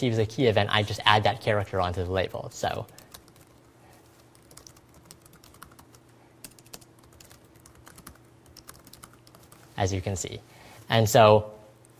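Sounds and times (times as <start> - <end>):
speech: 0.0 - 3.0, 9.8 - 11.6
faint steady hum: 0.0 - 11.9
typing on a computer keyboard: 2.9 - 3.5, 4.3 - 9.6.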